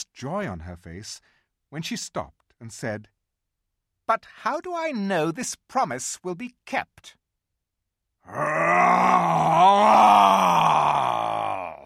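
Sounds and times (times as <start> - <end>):
speech: 0.0 - 3.2, 4.1 - 7.2, 8.2 - 11.2
human voice imitating a lion's roar: 8.3 - 11.8.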